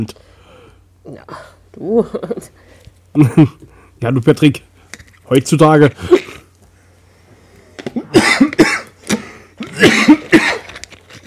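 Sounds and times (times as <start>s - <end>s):
speech: 0.0s - 0.3s, 1.0s - 4.7s, 5.3s - 6.2s
person coughing: 6.0s - 6.4s, 7.9s - 10.8s.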